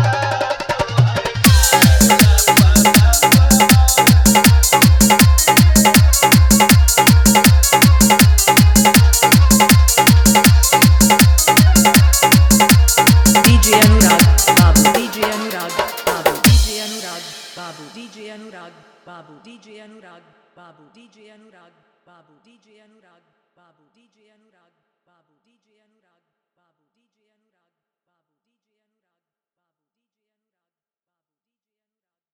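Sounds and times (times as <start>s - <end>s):
dholak bass dance mix: 0.0s - 18.0s.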